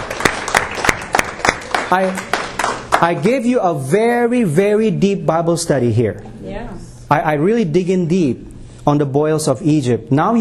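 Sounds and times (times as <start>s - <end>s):
audience clapping hands in a loose steady rhythm: 0.0s - 3.4s
speech: 1.9s - 2.4s, 3.0s - 10.3s.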